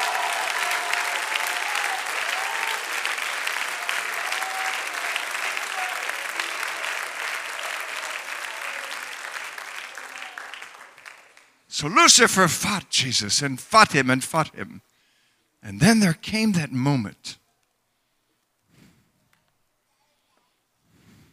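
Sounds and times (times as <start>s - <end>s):
audience clapping hands and cheering: 0.0s - 13.2s
speech: 11.8s - 14.9s, 15.7s - 17.4s.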